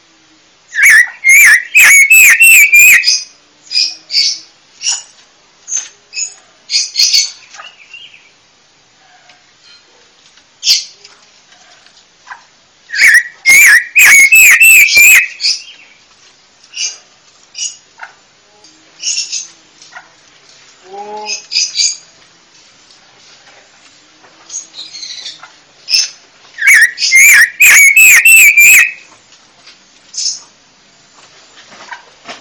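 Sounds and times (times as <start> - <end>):
Panca warna bird singing a whistled phrase: 0.7 - 3.2, 12.9 - 15.7, 26.6 - 29.0.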